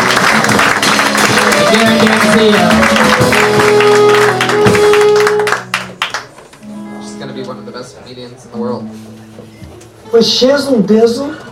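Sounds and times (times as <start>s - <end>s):
audience applause: 0.0s - 6.6s
speech: 1.8s - 3.4s, 10.1s - 11.4s.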